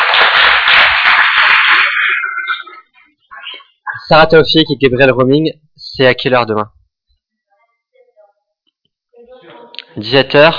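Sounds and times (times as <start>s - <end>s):
audience applauding: 0.0s - 2.8s
speech: 4.1s - 6.8s, 10.0s - 10.5s.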